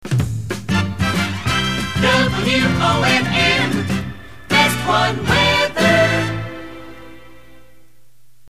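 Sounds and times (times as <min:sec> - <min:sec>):
jingle: 0:01.1 - 0:07.7.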